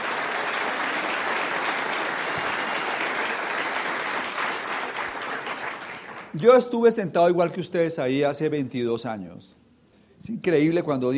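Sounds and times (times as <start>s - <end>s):
audience applause: 0.0s - 6.4s
speech: 6.3s - 9.6s, 10.2s - 11.1s.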